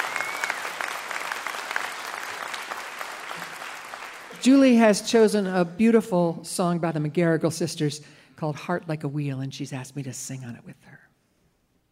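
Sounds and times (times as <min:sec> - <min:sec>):
crowd applauding: 0:00.0 - 0:04.8
speech: 0:04.4 - 0:11.0.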